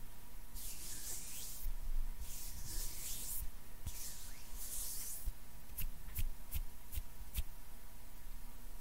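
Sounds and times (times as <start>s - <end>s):
hand sounds: 0.6s - 7.5s.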